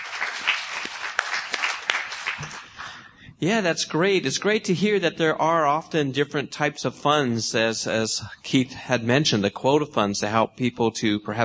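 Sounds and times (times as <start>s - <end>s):
audience clapping hands: 0.0s - 2.9s
speech: 3.4s - 11.4s.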